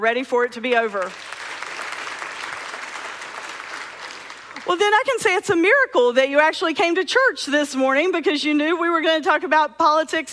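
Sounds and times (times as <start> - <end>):
speech: 0.0 - 1.4, 4.7 - 10.3
crowd clapping: 0.7 - 5.2.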